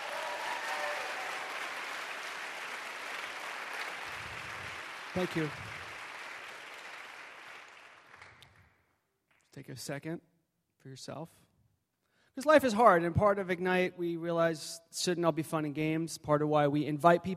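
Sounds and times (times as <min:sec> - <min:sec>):
crowd audience applause: 0:00.0 - 0:08.7
speech: 0:05.2 - 0:05.7, 0:09.6 - 0:11.5, 0:12.4 - 0:17.3.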